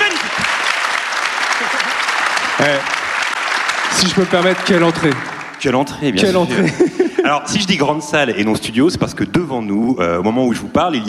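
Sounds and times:
live audience applauding: 0:00.0 - 0:06.8
laughter: 0:01.4 - 0:02.9, 0:06.1 - 0:07.8
speech: 0:02.6 - 0:03.0, 0:03.9 - 0:11.0.

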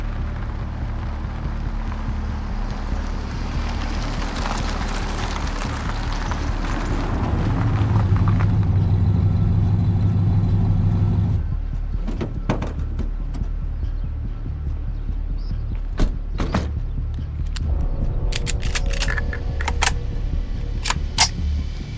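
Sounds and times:
suspicious vehicle approaching with low engine drone: 0:00.0 - 0:15.8, 0:16.8 - 0:21.9
sharp clicks and creaks: 0:17.4 - 0:20.1, 0:20.7 - 0:21.4.

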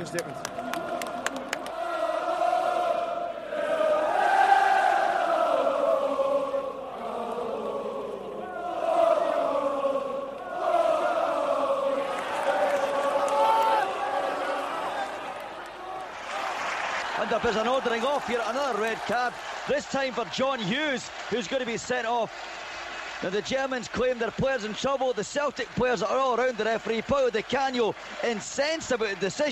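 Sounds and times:
speech: 0:00.0 - 0:00.6, 0:17.4 - 0:22.6, 0:23.2 - 0:29.4
Celtic football fans singing in a stadium at a match against Hamburg: 0:00.4 - 0:23.3.

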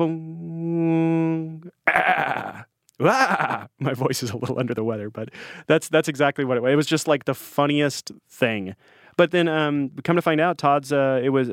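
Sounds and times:
speech: 0:00.0 - 0:00.3, 0:03.0 - 0:11.5
voice imitating a goat call: 0:00.0 - 0:03.7.

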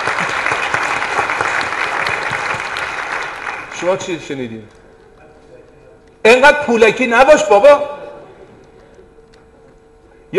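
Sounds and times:
audience clapping: 0:00.0 - 0:04.8
speech: 0:03.8 - 0:04.8, 0:06.2 - 0:08.0.

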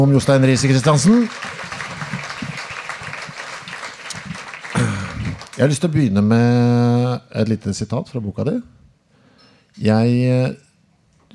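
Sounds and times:
speech: 0:00.0 - 0:01.7, 0:05.6 - 0:08.8, 0:09.8 - 0:10.6
audience applause: 0:00.0 - 0:05.8.

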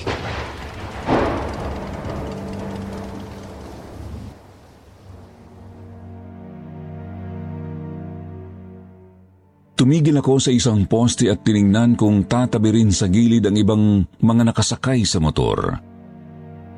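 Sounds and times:
loud booming crash: 0:00.0 - 0:05.6
heavy rain in a storm: 0:00.0 - 0:06.3
low droning hum: 0:00.2 - 0:05.6
speech: 0:09.8 - 0:15.9.

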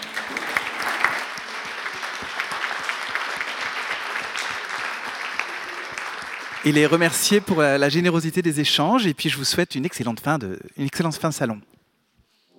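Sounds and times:
audience applause for speakers: 0:00.0 - 0:07.9
speech: 0:06.6 - 0:11.7.

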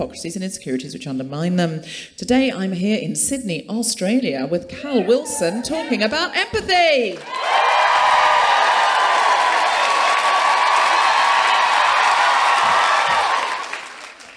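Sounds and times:
speech: 0:00.0 - 0:07.6
live audience cheering and applauding: 0:05.1 - 0:14.3.

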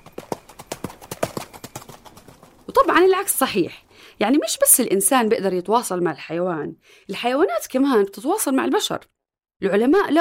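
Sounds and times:
horse hooves clip-clopping at a walk: 0:00.0 - 0:03.4
speech: 0:02.8 - 0:10.1.

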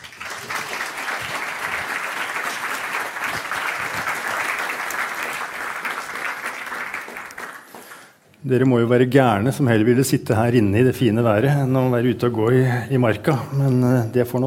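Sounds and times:
audience applause: 0:00.0 - 0:08.2
speech: 0:08.4 - 0:14.4.

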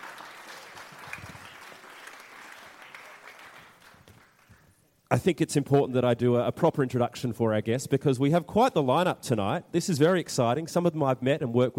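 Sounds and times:
audience applause: 0:00.0 - 0:04.7
speech: 0:05.1 - 0:11.7.

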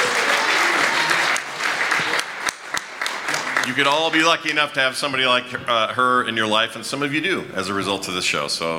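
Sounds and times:
audience applause: 0:00.0 - 0:05.2
speech: 0:03.7 - 0:08.7.

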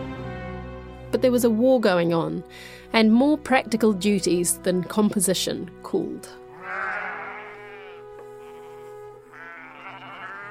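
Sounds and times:
speech: 0:01.1 - 0:06.9
ewes bleating on a farm in Taihape: 0:06.5 - 0:10.4.

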